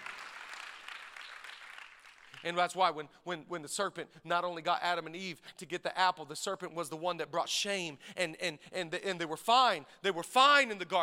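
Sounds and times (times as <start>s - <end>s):
crowd clapping: 0.0s - 2.6s
speech: 2.4s - 11.0s.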